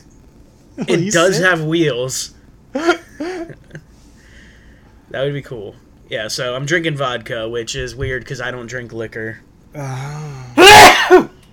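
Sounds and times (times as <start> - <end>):
speech: 0.8 - 3.0, 5.1 - 10.5
person sneezing: 10.6 - 11.3.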